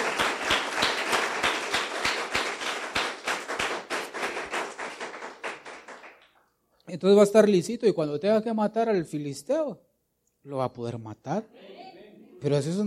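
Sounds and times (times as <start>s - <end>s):
crowd applause: 0.0s - 6.3s
speech: 6.9s - 11.7s, 12.4s - 12.8s.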